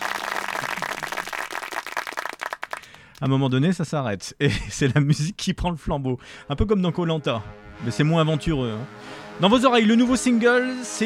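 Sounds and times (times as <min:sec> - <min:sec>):
applause: 0:00.0 - 0:03.3
laughter: 0:00.4 - 0:01.4, 0:04.4 - 0:05.3
speech: 0:03.2 - 0:11.0.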